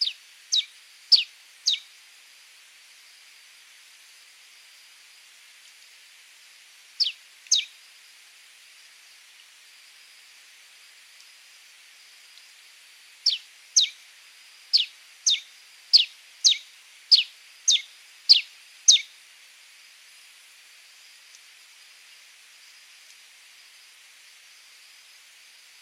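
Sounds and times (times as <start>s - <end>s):
red-crested soldier bird singing: 0.0s - 1.9s, 7.0s - 7.7s, 13.2s - 14.0s, 14.7s - 19.1s.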